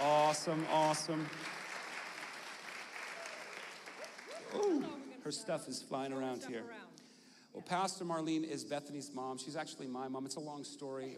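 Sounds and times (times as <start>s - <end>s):
audience clapping: 0.0s - 5.0s
speech: 0.3s - 1.5s, 4.5s - 7.0s, 7.6s - 11.1s.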